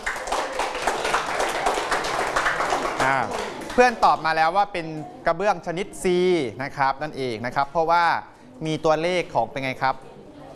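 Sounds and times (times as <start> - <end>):
classroom clapping for a student: 0.0 - 4.2
speech: 3.1 - 10.1.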